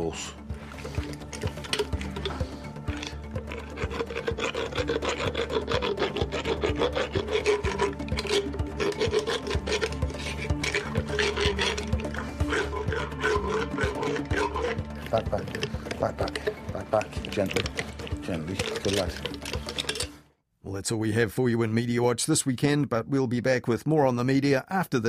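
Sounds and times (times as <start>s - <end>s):
speech: 0.1s - 1.0s, 17.4s - 17.8s, 18.5s - 19.3s, 20.9s - 25.0s
rasp filing down a horse's teeth: 0.8s - 20.1s.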